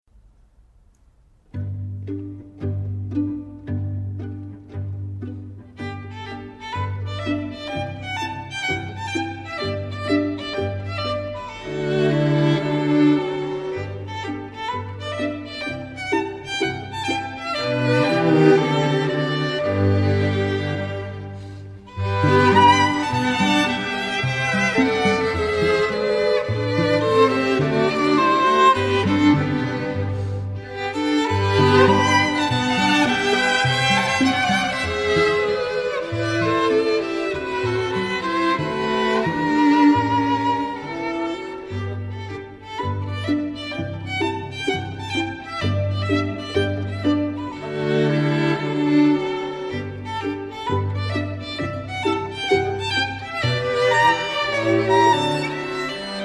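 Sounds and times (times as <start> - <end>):
strings: 0.4 - 56.2.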